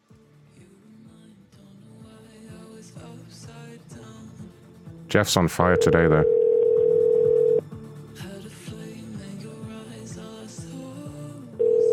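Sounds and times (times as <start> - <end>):
speech: 2.9 - 6.4
ringback tone on an outgoing phone call: 5.7 - 7.6, 11.6 - 11.9.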